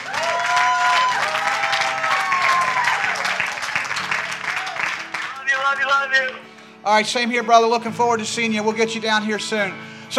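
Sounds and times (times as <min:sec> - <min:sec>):
audience applause: 0:00.0 - 0:06.7
speech: 0:06.0 - 0:10.1.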